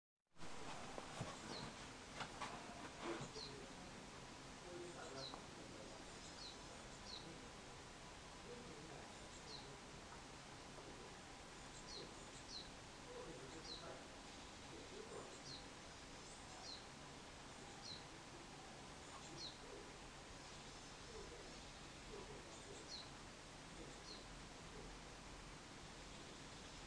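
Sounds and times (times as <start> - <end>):
background hiss: 0.4 - 26.8
bird chirping: 1.2 - 1.8, 3.1 - 3.7, 4.6 - 7.4, 8.4 - 10.3, 11.6 - 24.9, 25.9 - 26.8.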